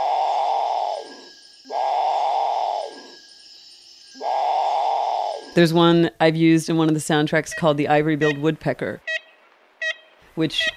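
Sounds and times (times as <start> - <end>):
Great Potoo groaning calls: 0.0 - 3.2, 4.2 - 5.6
speech: 5.6 - 9.1, 10.4 - 10.7.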